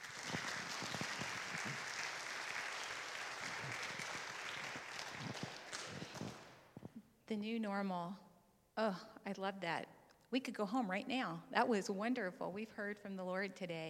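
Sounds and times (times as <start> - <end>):
audience applause welcoming a speaker: 0.0 - 6.6
speech: 7.3 - 8.2, 8.8 - 13.8.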